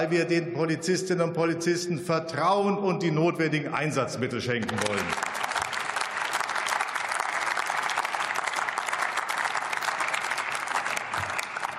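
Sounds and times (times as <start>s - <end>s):
speech: 0.0s - 5.4s
parliament applause: 4.5s - 11.7s.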